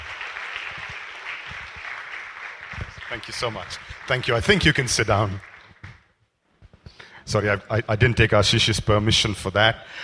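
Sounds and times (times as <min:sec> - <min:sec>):
church congregation applause welcoming a guest speaker: 0:00.0 - 0:06.1
speech: 0:03.1 - 0:05.5, 0:07.3 - 0:10.0.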